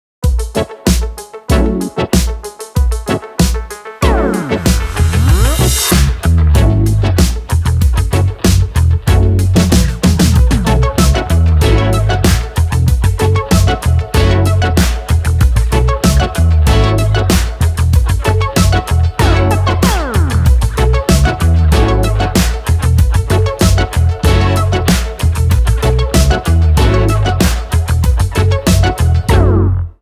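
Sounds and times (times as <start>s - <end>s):
instrumental groove: 0.2s - 29.8s.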